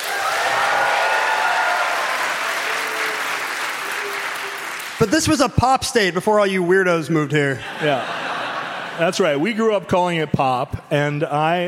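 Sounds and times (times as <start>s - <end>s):
crowd audience applause: 0.0s - 5.4s
speech: 5.0s - 8.2s, 9.0s - 11.6s
laughter: 7.5s - 9.7s.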